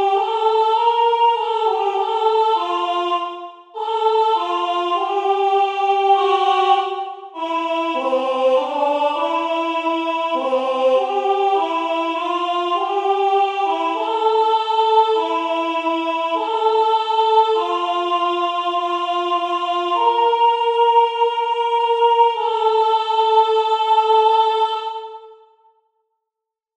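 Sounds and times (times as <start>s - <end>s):
soprano singing: 0.0s - 25.4s.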